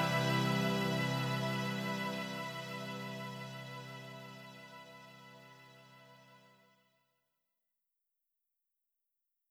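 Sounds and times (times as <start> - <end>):
off vocal instrumental music: 0.0 - 5.9.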